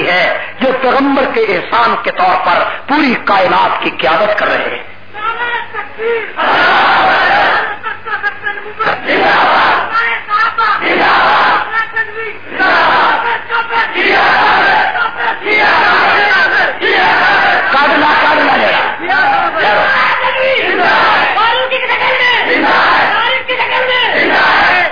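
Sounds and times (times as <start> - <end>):
speech: 0.1 - 7.4, 8.1 - 16.4
large crowd chanting religious slogans: 6.4 - 7.7, 8.8 - 9.9, 10.8 - 11.7, 12.4 - 24.8.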